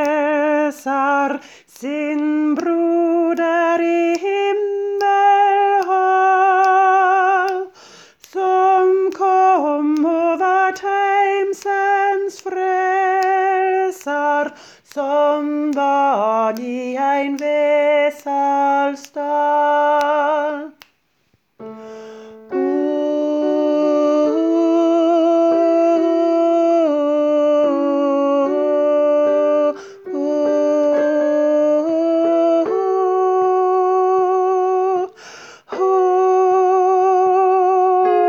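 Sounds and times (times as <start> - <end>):
alto voice singing a Norwegian Christmas song: 0.0 - 38.2.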